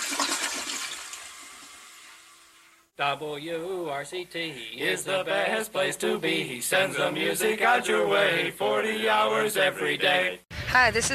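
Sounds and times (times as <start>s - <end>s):
water rushing down the drain: 0.0s - 2.3s
toilet flushing: 0.0s - 2.8s
speech: 3.0s - 11.1s.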